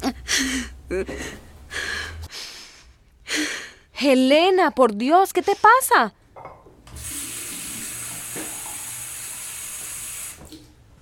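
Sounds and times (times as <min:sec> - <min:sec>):
speech: 0:00.1 - 0:01.4, 0:04.0 - 0:06.5
faucet running drinking water: 0:06.9 - 0:10.7.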